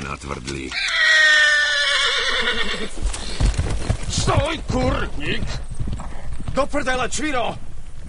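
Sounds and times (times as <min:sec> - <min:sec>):
speech: 0:00.1 - 0:01.1, 0:02.3 - 0:05.6, 0:06.6 - 0:07.6
agitated horse neighing: 0:00.7 - 0:03.4.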